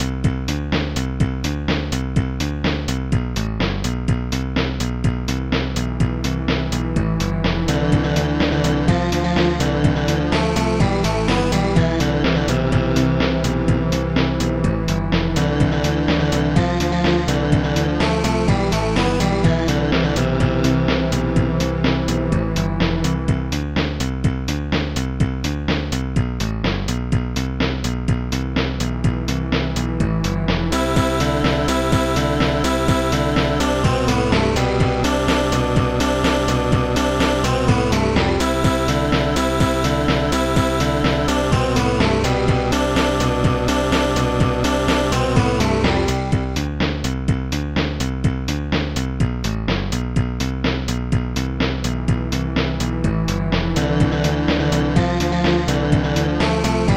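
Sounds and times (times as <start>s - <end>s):
survival music: 0.0s - 56.9s.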